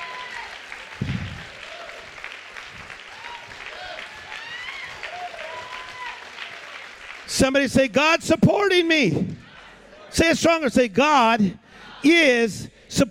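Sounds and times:
audience clapping hands: 0:00.0 - 0:08.2
speech: 0:07.4 - 0:09.4, 0:10.1 - 0:13.1.

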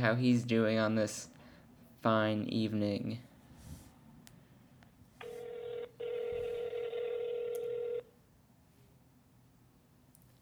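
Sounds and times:
speech: 0:00.0 - 0:01.4, 0:02.0 - 0:03.3
telephone dialing tones: 0:05.2 - 0:08.0.

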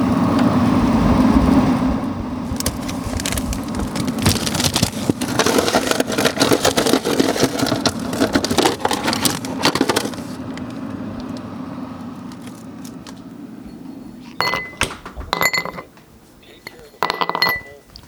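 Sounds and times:
low hum: 0:00.0 - 0:18.0
ice cubes clinking in a scotch glass: 0:02.5 - 0:10.4.

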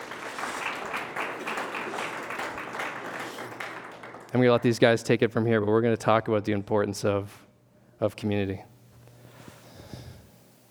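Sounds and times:
audience applause: 0:00.0 - 0:04.8
speech: 0:04.3 - 0:07.4, 0:08.0 - 0:08.7.

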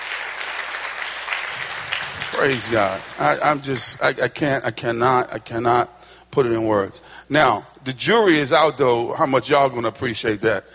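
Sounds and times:
audience clapping hands: 0:00.0 - 0:04.2
speech: 0:02.4 - 0:10.7.

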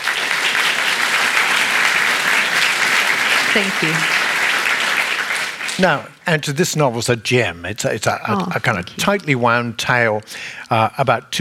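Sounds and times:
audience applause welcoming a novelist at a literary conversation event: 0:00.0 - 0:06.6
speech: 0:03.6 - 0:04.2, 0:05.8 - 0:11.3.

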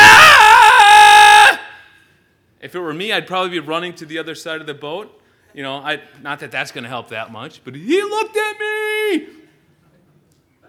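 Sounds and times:
voice imitating a terrified man screaming on a boat: 0:00.0 - 0:01.8
speech: 0:02.7 - 0:09.4.

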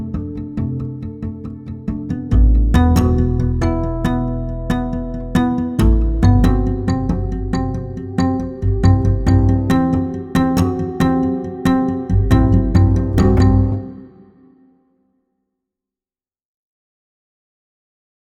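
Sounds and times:
taut neutral ostinato: 0:00.0 - 0:14.2.

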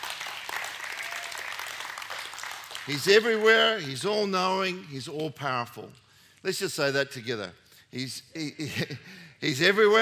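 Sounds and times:
audience clapping: 0:00.0 - 0:04.9
speech: 0:02.9 - 0:10.0.

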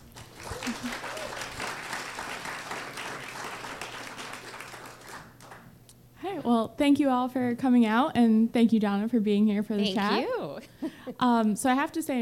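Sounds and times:
audience applause: 0:00.0 - 0:05.7
speech: 0:06.5 - 0:12.2.

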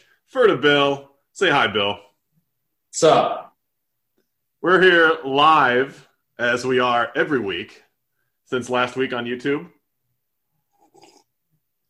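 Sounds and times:
speech: 0:00.3 - 0:02.1, 0:02.9 - 0:03.4, 0:04.6 - 0:07.8, 0:08.5 - 0:09.8
slurping sip of coffee: 0:10.7 - 0:11.3.

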